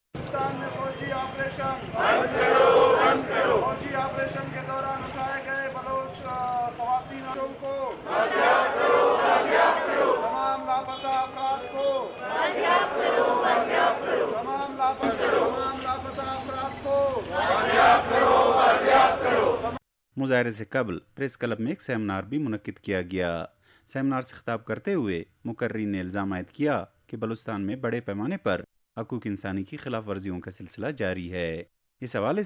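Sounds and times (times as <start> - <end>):
protesters chanting slogans: 0.2 - 19.8
speech: 0.3 - 2.6, 17.4 - 32.4.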